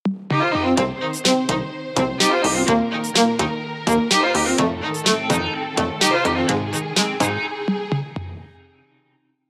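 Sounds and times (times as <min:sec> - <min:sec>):
strings ringtone: 0:00.4 - 0:07.7.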